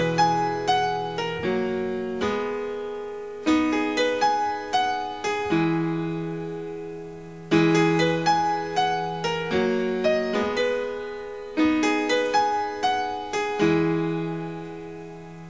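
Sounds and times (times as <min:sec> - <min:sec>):
piano: 0:00.0 - 0:15.4.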